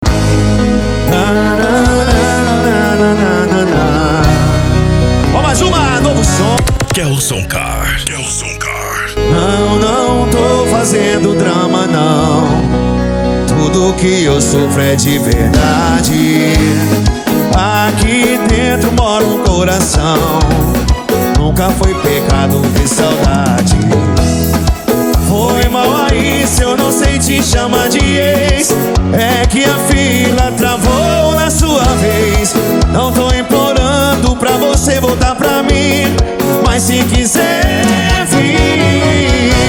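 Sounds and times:
sertanejo and lambadao music: 0:00.0 - 0:39.6.

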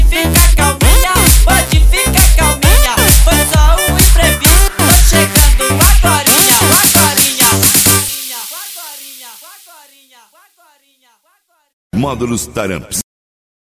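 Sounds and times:
electro funk music: 0:00.0 - 0:10.0.

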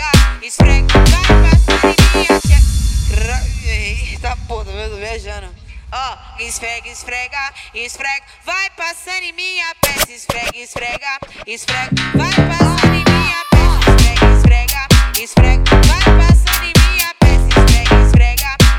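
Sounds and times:
mega funk music: 0:00.0 - 0:02.6, 0:09.8 - 0:18.7.

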